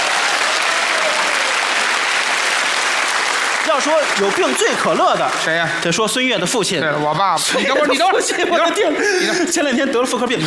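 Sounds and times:
audience applause: 0:00.0 - 0:06.0
speech: 0:03.8 - 0:10.4
laughter: 0:07.4 - 0:10.4.

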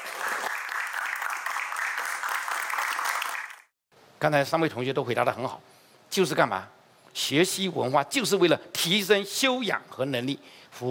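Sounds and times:
audience applause: 0:00.0 - 0:03.7
speech: 0:04.2 - 0:10.8.

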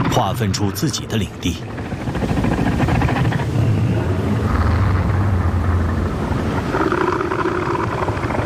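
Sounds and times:
speech: 0:00.2 - 0:01.8
male northern elephant seal warning roar: 0:02.9 - 0:08.4.

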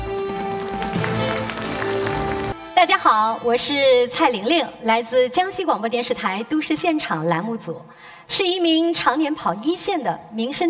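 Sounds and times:
crowd clapping: 0:00.2 - 0:02.6
speech: 0:02.8 - 0:10.6.

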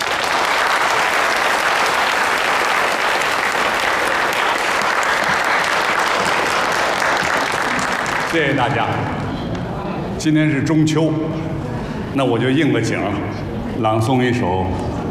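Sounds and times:
audience applause: 0:00.0 - 0:09.1
speech: 0:08.4 - 0:09.2, 0:10.2 - 0:11.5, 0:12.2 - 0:15.1.

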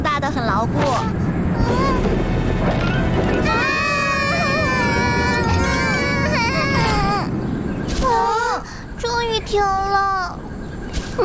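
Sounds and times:
strong wind blowing: 0:00.0 - 0:11.2
speech: 0:00.3 - 0:03.6.

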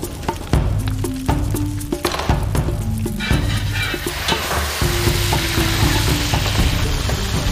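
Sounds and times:
lamb stir-frying in a wok: 0:00.0 - 0:07.5
spatula scraping and tossing meat in a wok: 0:03.2 - 0:06.8.

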